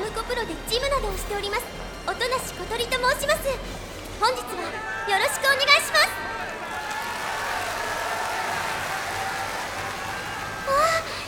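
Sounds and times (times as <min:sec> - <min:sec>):
speech: 0:00.3 - 0:06.5
audience applause: 0:06.5 - 0:11.2.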